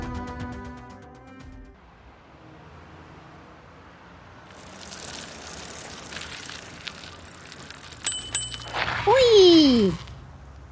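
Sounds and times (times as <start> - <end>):
bicycle rolling past with whirring rattling hiss: 4.3 - 10.3
bicycle bell rings: 4.5 - 8.9.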